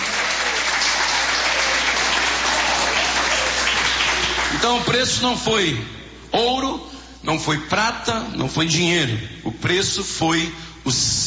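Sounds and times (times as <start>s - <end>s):
audience applauding: 0.0s - 4.9s
speech: 4.6s - 11.2s.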